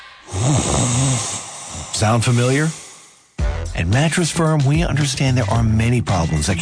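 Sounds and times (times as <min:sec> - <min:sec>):
sleeper snoring: 0:00.3 - 0:03.3
speech: 0:02.0 - 0:02.8, 0:03.8 - 0:06.6.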